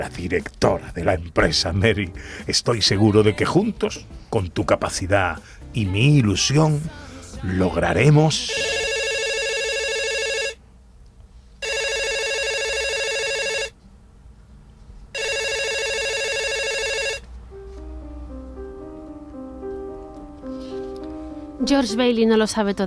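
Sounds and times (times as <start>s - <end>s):
speech: 0.0s - 8.7s, 21.7s - 22.8s
soft music: 0.0s - 9.0s, 16.2s - 22.8s
telephone ringing with bright electric rings in a radio drama: 8.5s - 10.6s, 11.6s - 13.8s, 15.1s - 17.3s.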